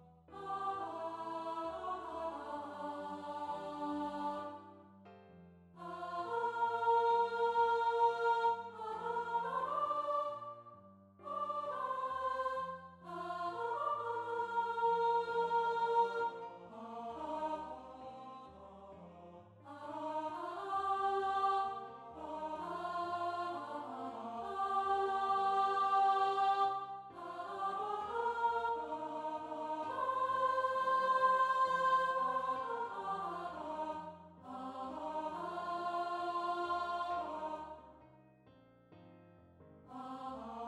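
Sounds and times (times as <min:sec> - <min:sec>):
sopranos of a choir singing: 0:00.3 - 0:04.8, 0:05.8 - 0:37.9, 0:39.9 - 0:40.6.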